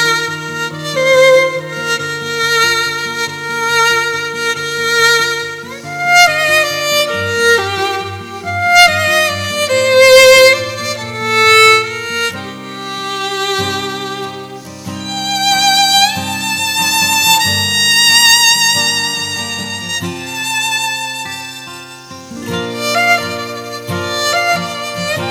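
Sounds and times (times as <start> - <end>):
guitar: 0.0 - 25.2
violin: 0.0 - 25.2.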